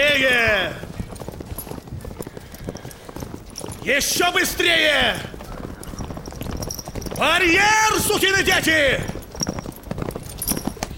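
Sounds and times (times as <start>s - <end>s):
cadets' horses galloping in a film cavalry drill: 0.0s - 10.9s
speech: 3.9s - 5.3s, 7.2s - 9.2s.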